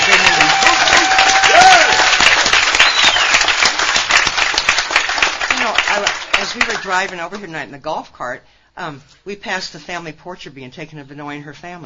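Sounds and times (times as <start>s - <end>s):
audience applause: 0.0s - 6.9s
speech: 6.6s - 11.8s.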